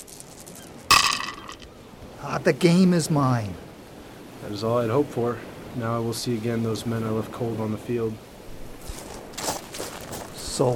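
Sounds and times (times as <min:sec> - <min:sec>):
dice being rolled: 0:00.1 - 0:01.7
speech: 0:02.2 - 0:03.6, 0:04.4 - 0:08.3, 0:10.6 - 0:10.7.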